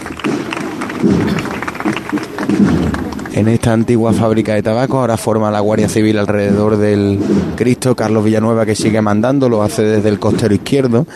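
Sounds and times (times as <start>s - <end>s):
applause of gathered crowd: 0.0s - 4.5s
speech: 3.4s - 11.1s.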